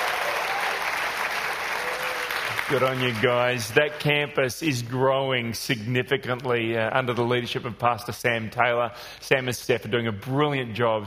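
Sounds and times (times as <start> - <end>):
large crowd clapping and cheering: 0.0 - 4.1
speech: 2.7 - 11.0.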